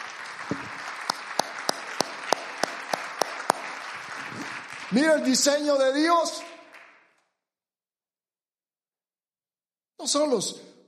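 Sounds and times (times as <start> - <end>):
audience applause: 0.0 - 7.1
speech: 0.5 - 0.8, 4.9 - 6.5, 10.0 - 10.7.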